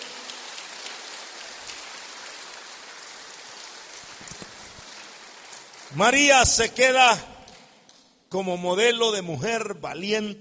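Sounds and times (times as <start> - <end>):
audience applause: 0.0 - 6.1
speech: 5.9 - 7.3, 8.3 - 10.3.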